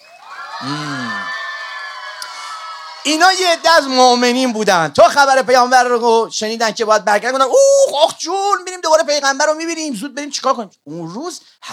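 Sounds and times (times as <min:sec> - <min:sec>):
crowd cheering hooray and clapping: 0:00.0 - 0:05.5
speech: 0:00.6 - 0:01.2, 0:03.0 - 0:11.7.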